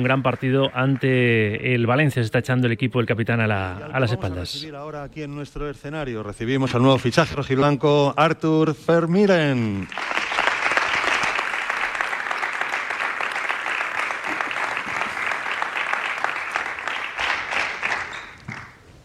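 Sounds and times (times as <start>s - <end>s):
auditorium audience applause: 0.0s - 1.6s, 9.8s - 18.8s
speech: 0.0s - 10.2s.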